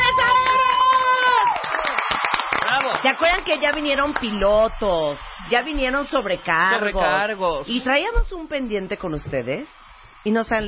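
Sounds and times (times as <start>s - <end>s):
cheers and whoops: 0.0s - 3.0s
studio audience applause: 0.0s - 7.6s
speech: 3.0s - 10.6s.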